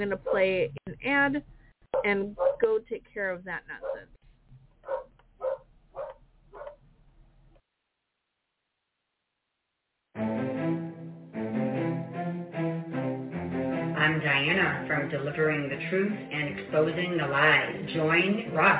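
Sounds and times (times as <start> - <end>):
speech: 0.0 - 4.2, 14.1 - 18.7
dog barks: 2.0 - 2.6, 3.8 - 4.1, 4.8 - 6.8
loud full music: 10.2 - 18.7.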